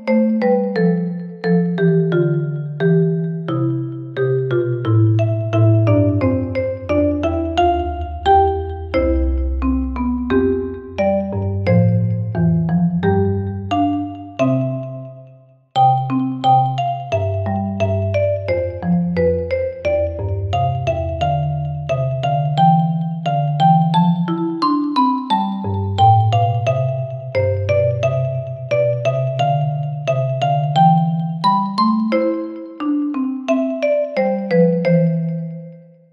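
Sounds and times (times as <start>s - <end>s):
cute animal-like marimba melody: 0.0s - 35.9s.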